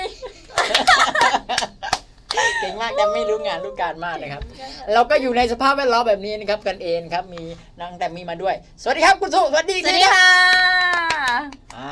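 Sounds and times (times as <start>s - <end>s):
hand clapping: 0.4s - 2.5s, 10.3s - 11.8s
speech: 2.7s - 11.8s.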